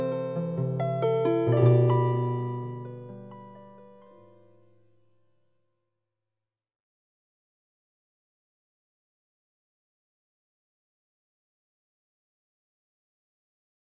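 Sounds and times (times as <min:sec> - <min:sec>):
harp playing chords in septimal just intonation: 0:00.0 - 0:04.4.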